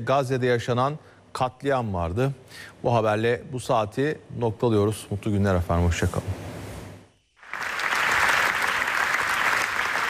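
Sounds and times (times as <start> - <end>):
speech: 0.0 - 6.5
standing ovation applause at film festival: 7.4 - 10.0.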